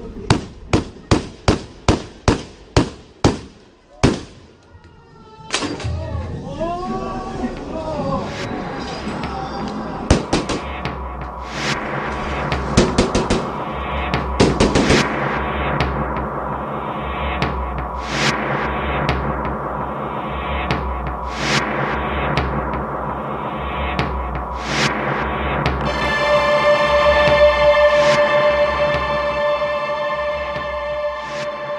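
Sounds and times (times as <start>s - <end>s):
rifle fired at the entrance of a mosque in the 2019 Christchurch attack: 0.3s - 4.4s
dense sustained wash of sound: 6.1s - 31.7s.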